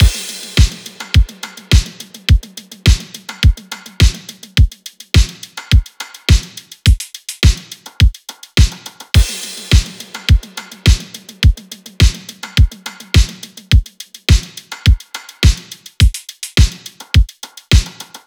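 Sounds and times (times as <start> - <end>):
full drum loop: 0.0 - 18.2.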